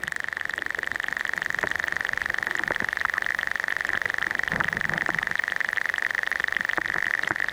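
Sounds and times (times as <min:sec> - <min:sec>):
marine crustaceans in seagrass beds: 0:00.0 - 0:07.5.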